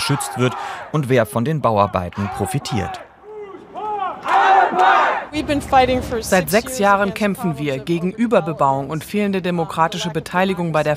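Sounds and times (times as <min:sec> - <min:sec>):
speech: 0:00.1 - 0:03.1, 0:04.7 - 0:10.9
protest crowd chanting at a demonstration: 0:02.2 - 0:10.2.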